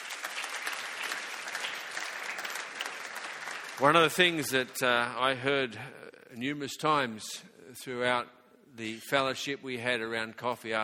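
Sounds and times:
audience clapping: 0.0s - 4.8s
speech: 3.8s - 10.8s.

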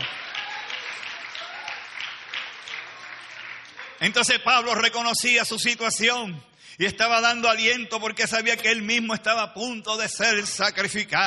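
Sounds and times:
audience applause: 0.0s - 4.2s
speech: 4.0s - 11.2s.

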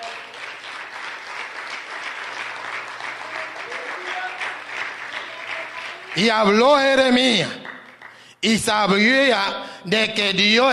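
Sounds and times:
audience applause: 0.0s - 8.2s
speech: 6.2s - 7.6s, 8.4s - 10.7s.

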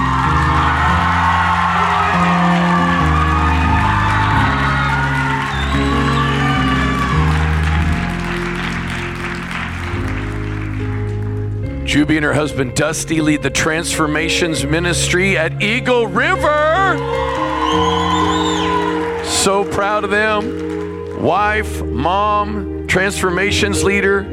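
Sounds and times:
whoops: 0.0s - 9.2s, 16.8s - 19.7s
crowd applauding and cheering: 0.0s - 11.8s, 16.1s - 21.8s
music playing: 0.0s - 24.3s
speech: 12.0s - 18.0s, 19.4s - 20.6s, 21.2s - 24.3s.

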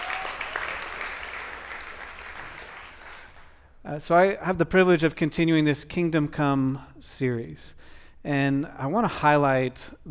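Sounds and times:
audience applause: 0.0s - 3.6s
speech: 3.9s - 10.0s.

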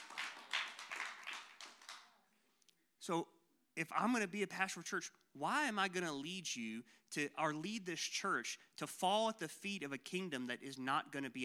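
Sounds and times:
church congregation clapping during a sermon: 0.0s - 2.2s
speech: 3.1s - 11.4s.

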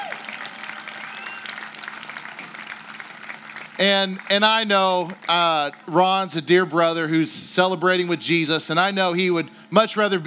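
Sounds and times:
audience applause: 0.0s - 6.3s
speech: 3.8s - 10.2s.

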